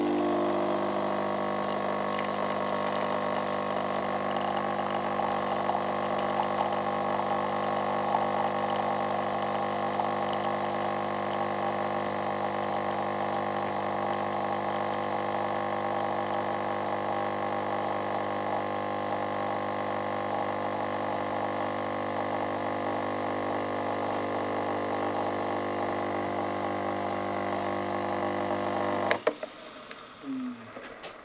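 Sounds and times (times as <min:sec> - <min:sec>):
pad coffee machine brewing: 0:00.0 - 0:31.2.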